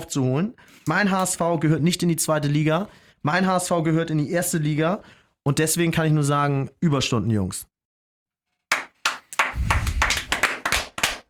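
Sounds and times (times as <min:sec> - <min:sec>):
speech: 0:00.0 - 0:07.7
restrained applause: 0:08.7 - 0:11.2.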